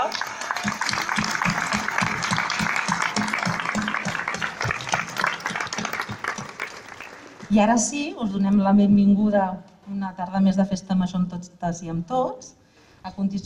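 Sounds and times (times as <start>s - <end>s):
crowd applauding: 0.0s - 7.5s
speech: 7.5s - 13.4s.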